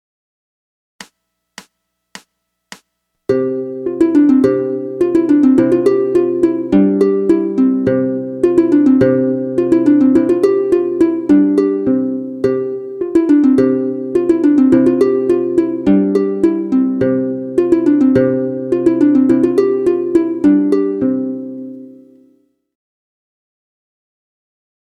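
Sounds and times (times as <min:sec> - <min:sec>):
harp: 0:03.3 - 0:22.4.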